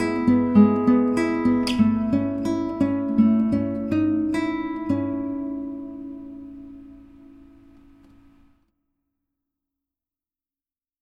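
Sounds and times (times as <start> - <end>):
fingerstyle guitar: 0.0 - 8.6.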